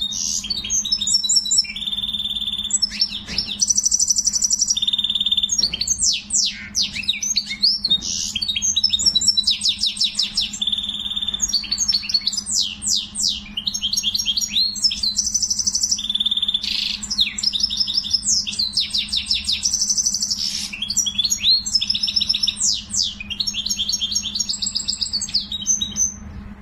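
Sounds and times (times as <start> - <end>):
canary singing: 0.0 - 26.6.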